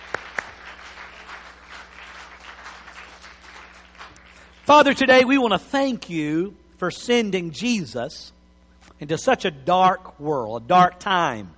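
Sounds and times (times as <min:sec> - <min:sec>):
audience clapping: 0:00.0 - 0:04.9
speech: 0:04.7 - 0:08.4, 0:09.0 - 0:11.5.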